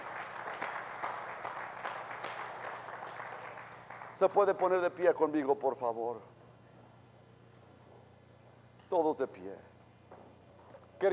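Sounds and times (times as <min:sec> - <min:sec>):
audience applause: 0:00.0 - 0:04.4
speech: 0:04.2 - 0:06.4, 0:08.9 - 0:09.7.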